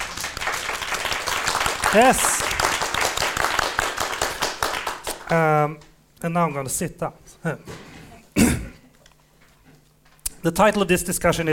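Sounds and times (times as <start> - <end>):
audience applause: 0.0 - 5.4
speech: 1.9 - 2.4, 5.3 - 7.8, 10.4 - 11.5.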